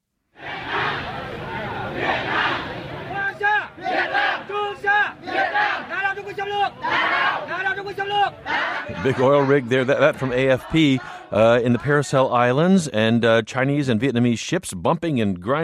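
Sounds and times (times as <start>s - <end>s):
mixed shouting: 0.4s - 12.1s
protesters chanting against oil rig: 0.4s - 12.7s
speech: 7.8s - 15.6s.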